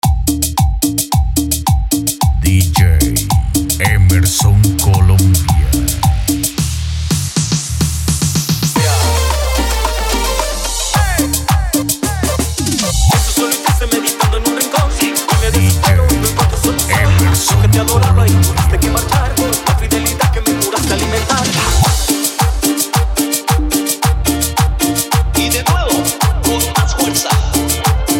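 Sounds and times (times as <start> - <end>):
cumbia music mix: 0.0 - 28.1.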